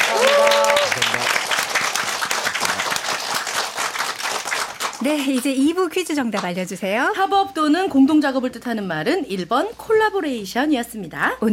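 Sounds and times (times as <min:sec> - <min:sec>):
audience applause: 0:00.0 - 0:05.4
speech: 0:05.0 - 0:11.5.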